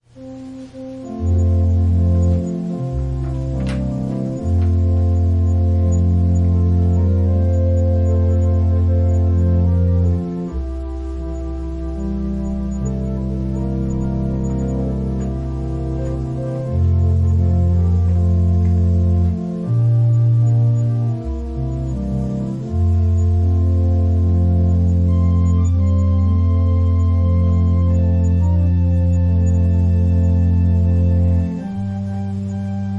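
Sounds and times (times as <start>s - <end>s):
organ prelude: 0.0s - 32.9s.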